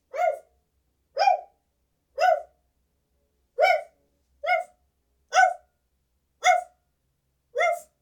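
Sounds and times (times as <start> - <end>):
dog barking: 0.1 - 0.5, 1.2 - 1.6, 2.2 - 2.6, 3.6 - 5.7, 6.4 - 6.8, 7.6 - 7.9.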